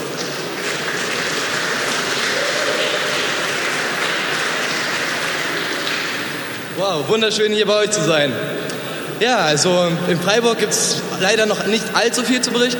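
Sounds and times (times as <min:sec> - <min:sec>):
audience applause: 0:00.0 - 0:06.8
speech: 0:06.8 - 0:12.7.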